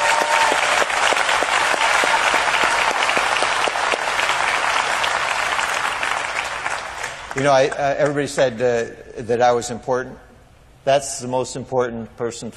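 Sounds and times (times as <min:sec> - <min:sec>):
audience applause: 0:00.0 - 0:07.8
speech: 0:07.4 - 0:12.5.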